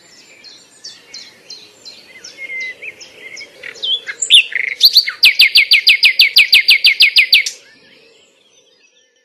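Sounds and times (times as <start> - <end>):
nightingale singing: 0.0 - 9.2.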